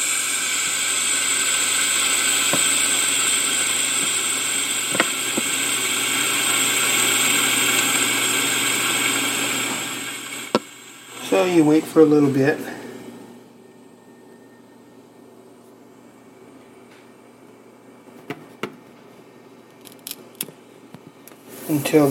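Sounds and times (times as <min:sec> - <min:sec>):
CO2 gas releasing into water: 0:00.0 - 0:11.6
speech: 0:11.3 - 0:12.7, 0:21.7 - 0:22.0.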